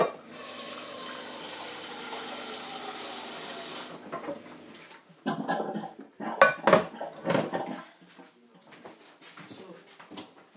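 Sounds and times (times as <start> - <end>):
water running from a kitchen tap: 0.0 - 4.2
dishes and cutlery clattering: 5.3 - 7.9.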